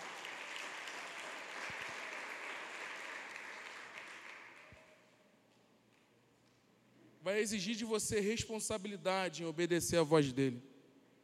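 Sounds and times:
audience applause: 0:00.0 - 0:04.8
speech: 0:07.2 - 0:10.7.

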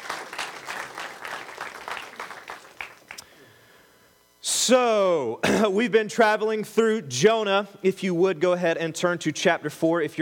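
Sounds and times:
audience applause: 0:00.0 - 0:03.2
speech: 0:04.7 - 0:10.2.

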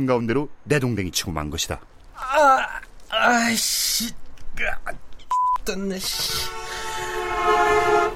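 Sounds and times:
speech: 0:00.0 - 0:06.6
car horn honking: 0:06.1 - 0:08.1.

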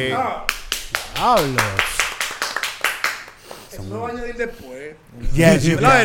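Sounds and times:
speech: 0:00.0 - 0:00.6, 0:01.2 - 0:02.0, 0:03.8 - 0:06.0
hands clapping: 0:00.5 - 0:03.7.

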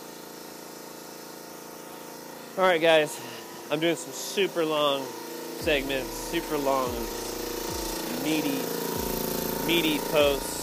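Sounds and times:
speech: 0:02.6 - 0:07.3, 0:08.2 - 0:09.0, 0:09.7 - 0:10.6
air hammer chiseling: 0:02.8 - 0:10.6.

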